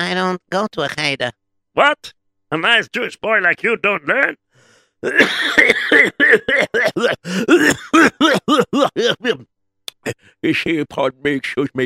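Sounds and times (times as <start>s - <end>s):
speech: 0.0s - 4.4s, 5.0s - 11.8s
person coughing after choking on a drink: 5.0s - 9.4s.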